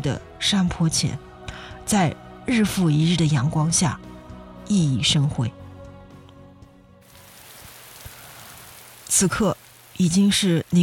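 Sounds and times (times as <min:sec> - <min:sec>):
speech: 0:00.0 - 0:01.3, 0:01.9 - 0:04.1, 0:04.7 - 0:05.6, 0:09.2 - 0:10.8
rain falling outside the window: 0:07.0 - 0:10.8.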